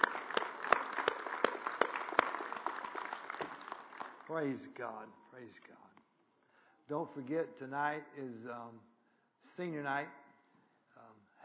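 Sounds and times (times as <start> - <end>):
crowd applauding: 0.0 - 4.8
speech: 4.3 - 5.9, 6.9 - 10.2.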